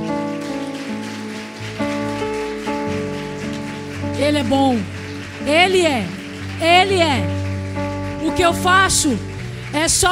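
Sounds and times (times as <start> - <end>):
crowd applause: 0.0 - 10.1
sustained keyboard chords: 0.0 - 10.1
speech: 4.2 - 7.4, 8.2 - 10.1.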